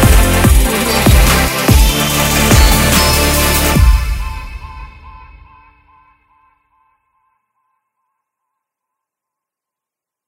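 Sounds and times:
future bass music: 0.0s - 5.5s.

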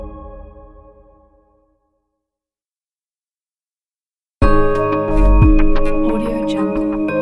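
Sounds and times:
corporate logo jingle: 4.4s - 7.1s.

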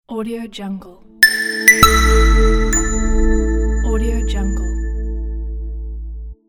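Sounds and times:
flat audio logo: 1.2s - 6.0s.

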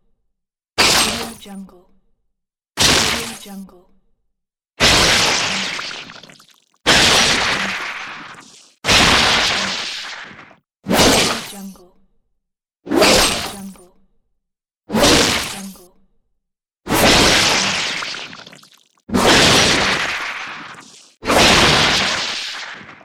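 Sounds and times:
spear weapon sounds: 0.8s - 1.4s, 2.8s - 3.4s, 4.8s - 11.5s, 12.9s - 13.6s, 14.9s - 15.8s, 16.9s - 23.0s.

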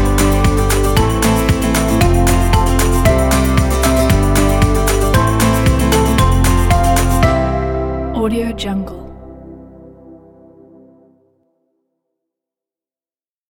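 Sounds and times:
upbeat folk music: 0.0s - 9.3s.

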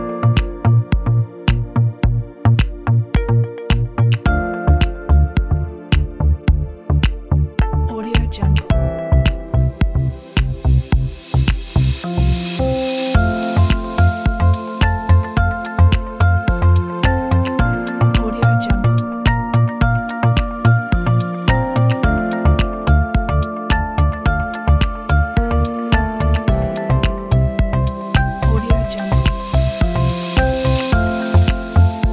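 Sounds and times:
dreamy ambient electronic corporate music: 0.0s - 32.1s.

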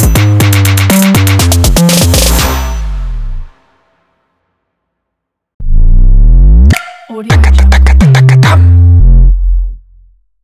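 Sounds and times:
urban voice bass percussion logo: 0.0s - 3.5s, 5.6s - 10.2s.

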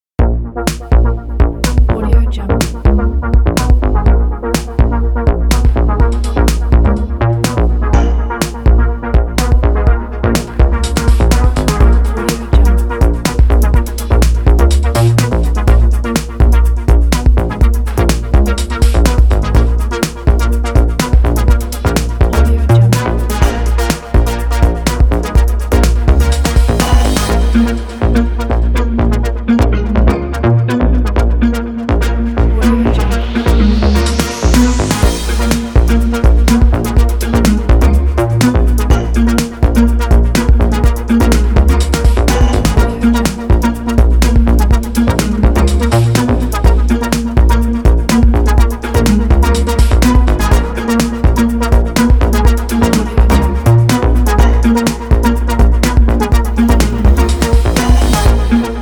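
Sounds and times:
powerful electro music: 0.0s - 58.8s.

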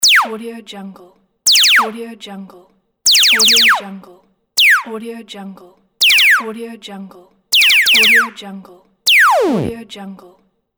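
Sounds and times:
laser sound effect: 0.0s - 0.4s, 1.5s - 1.9s, 3.1s - 3.9s, 4.6s - 4.9s, 6.0s - 6.5s, 7.6s - 8.4s, 9.1s - 9.8s.

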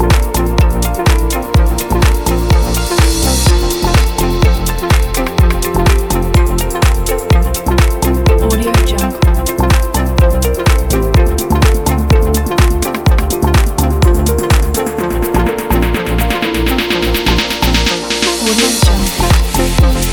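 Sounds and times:
cheerful inspiring upbeat corporate music: 0.0s - 20.1s.

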